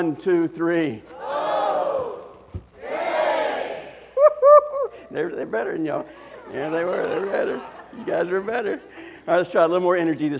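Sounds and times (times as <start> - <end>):
speech: 0.0 - 1.2, 5.1 - 10.3
audience split into two sides shouting as loud as it can: 1.2 - 4.1
laughter: 5.9 - 9.1.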